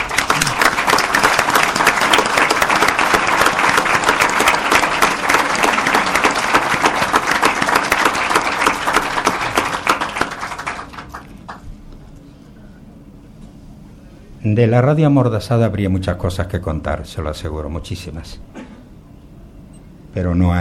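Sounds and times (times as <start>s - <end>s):
audience applause: 0.0s - 11.6s
speech: 14.6s - 18.6s, 20.2s - 20.5s.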